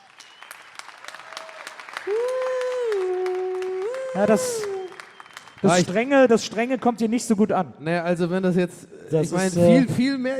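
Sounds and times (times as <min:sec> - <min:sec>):
audience applause: 0:00.0 - 0:06.6
speech: 0:02.0 - 0:02.3, 0:04.2 - 0:04.8, 0:05.6 - 0:10.3.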